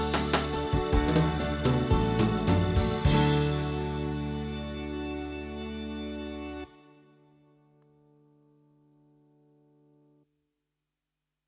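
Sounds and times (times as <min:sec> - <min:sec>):
Korg Pa4x unplugged ballad: 0:00.0 - 0:07.3.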